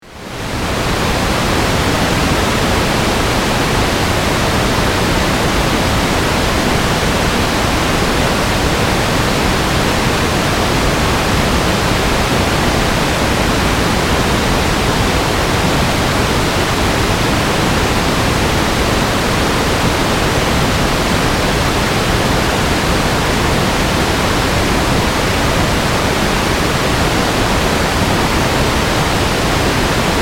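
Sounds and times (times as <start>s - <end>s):
hurricane roaring: 0.4s - 30.2s.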